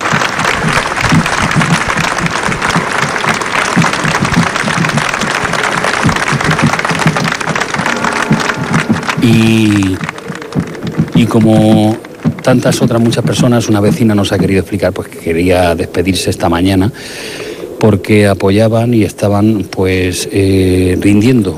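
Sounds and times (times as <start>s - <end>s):
loud applause from crowd in the Plaza del Cardenal Belluga: 0.0s - 13.7s
speech: 9.2s - 10.1s, 11.2s - 21.5s.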